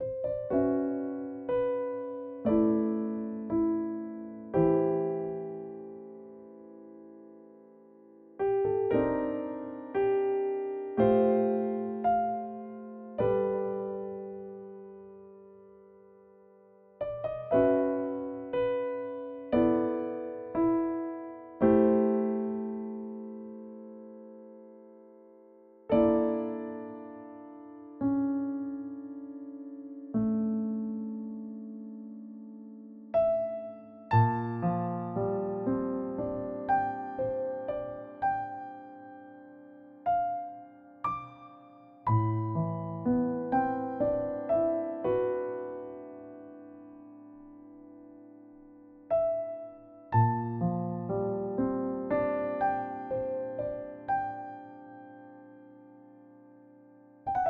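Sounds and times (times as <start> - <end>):
piano cover: 0.0 - 57.4.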